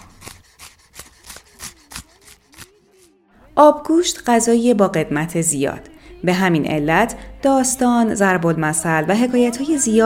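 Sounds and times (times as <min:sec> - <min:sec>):
chopping onions: 0:00.0 - 0:03.2
speech: 0:03.6 - 0:10.0.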